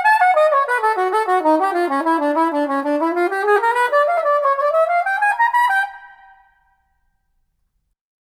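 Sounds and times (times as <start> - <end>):
soprano saxophone: 0.0 - 6.3.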